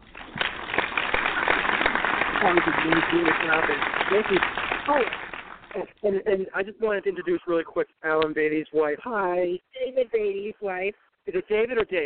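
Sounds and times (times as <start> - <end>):
audience applause: 0.0 - 5.8
speech: 2.4 - 12.0.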